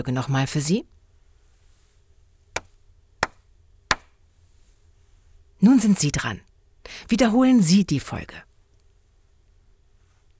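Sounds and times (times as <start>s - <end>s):
speech: 0.0s - 1.0s, 5.6s - 8.5s
sharp hand claps: 2.6s - 4.1s.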